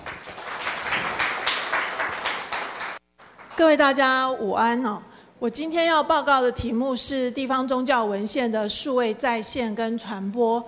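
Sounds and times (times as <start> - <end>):
audience applause welcoming a speaker: 0.0 - 3.6
speech: 3.6 - 10.6.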